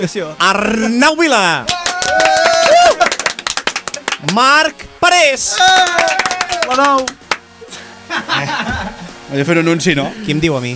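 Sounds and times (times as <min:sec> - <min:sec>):
speech: 0:00.0 - 0:02.4, 0:04.2 - 0:07.2, 0:08.1 - 0:10.7
sparse clapping from a few people in a room: 0:01.6 - 0:04.9, 0:05.5 - 0:07.5
laughter: 0:01.8 - 0:04.2, 0:07.6 - 0:09.2.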